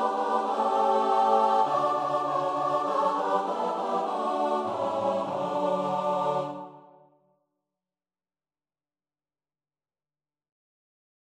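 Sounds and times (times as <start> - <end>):
choir singing: 0.0 - 7.2.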